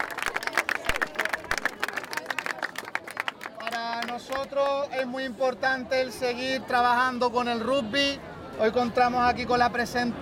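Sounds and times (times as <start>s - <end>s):
audience applause: 0.0s - 4.3s
speech: 4.4s - 10.2s.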